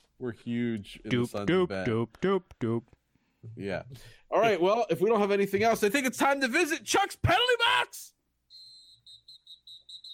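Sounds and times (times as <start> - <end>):
speech: 0.2 - 8.2
whistle blown: 8.5 - 10.1.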